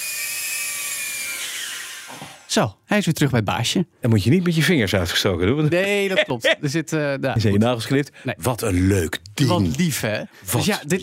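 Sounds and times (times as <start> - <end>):
small self-piloting camera drone buzzing: 0.0 - 2.4
speech: 2.1 - 11.0.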